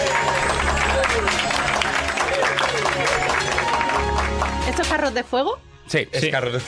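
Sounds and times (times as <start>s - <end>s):
applause sound effect: 0.0s - 5.2s
speech: 5.0s - 6.6s.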